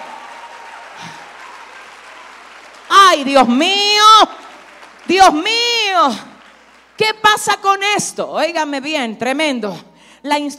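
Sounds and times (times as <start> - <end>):
audience applause: 0.0 - 7.0
speech: 3.1 - 4.4, 5.1 - 6.3, 7.0 - 10.5.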